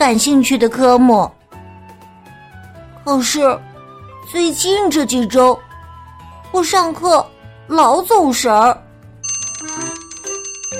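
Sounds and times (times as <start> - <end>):
speech: 0.0 - 1.4, 3.1 - 3.7, 4.3 - 5.7, 6.5 - 8.8
school lunch bell ringing: 9.2 - 10.7.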